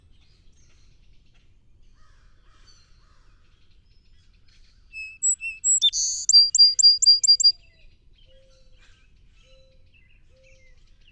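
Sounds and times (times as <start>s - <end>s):
song sparrow singing: 5.0s - 7.6s.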